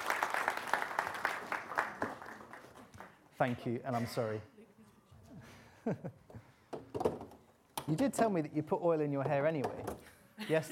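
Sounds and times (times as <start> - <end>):
round of applause from a group: 0.0 - 3.6
speech: 3.4 - 4.5, 5.8 - 6.2, 7.9 - 10.6.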